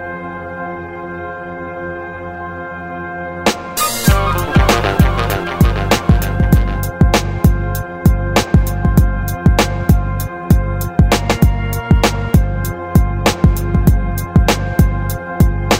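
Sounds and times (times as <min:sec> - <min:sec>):
instrumental music: 0:03.4 - 0:15.7.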